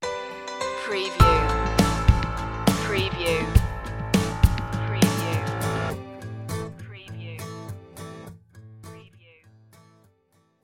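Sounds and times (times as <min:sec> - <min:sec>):
ocean breeze music stinger: 0:01.2 - 0:06.7.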